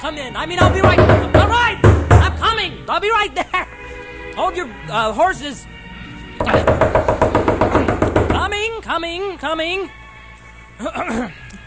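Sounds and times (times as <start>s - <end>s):
speech: 0.0s - 1.8s, 2.5s - 3.8s, 4.4s - 5.7s, 6.4s - 7.2s, 7.9s - 10.0s, 10.8s - 11.5s
knocking on a door: 0.6s - 2.4s, 6.4s - 8.6s.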